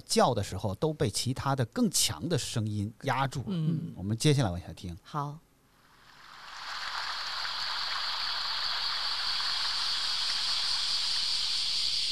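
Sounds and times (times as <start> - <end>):
speech: 0.0 - 5.4
cicadas chirping: 7.5 - 12.1.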